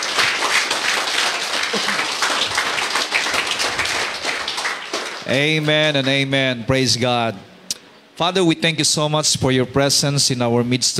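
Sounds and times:
congregation clapping during a church worship service: 0.0s - 6.4s
speech: 1.7s - 2.0s, 5.3s - 7.5s, 8.2s - 10.9s.

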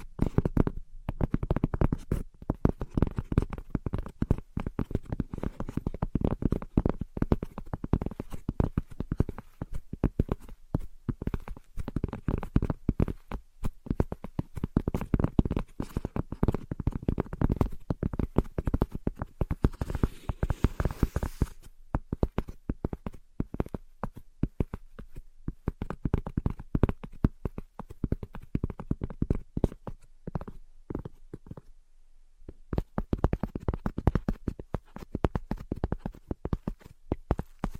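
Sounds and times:
tapping and scratching: 0.0s - 31.7s, 32.6s - 37.7s.

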